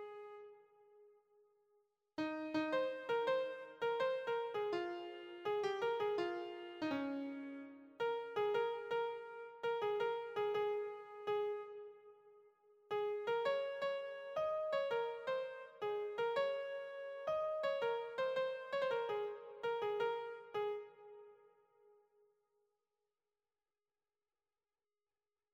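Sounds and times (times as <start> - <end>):
lead piano: 2.2 - 12.0, 12.9 - 21.2.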